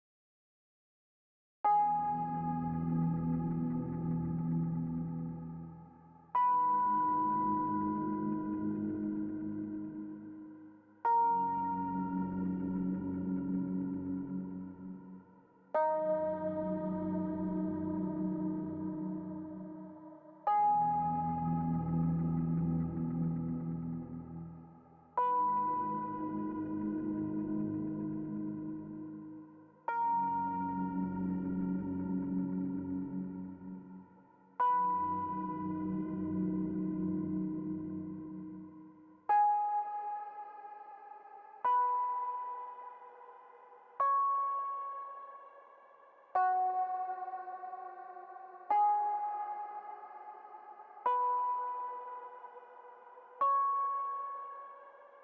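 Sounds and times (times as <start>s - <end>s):
synth soundtrack music: 1.7s - 55.2s.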